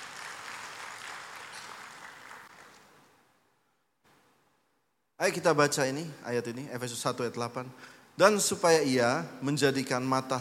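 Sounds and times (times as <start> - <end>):
crowd applauding: 0.0 - 2.9
speech: 5.2 - 10.4.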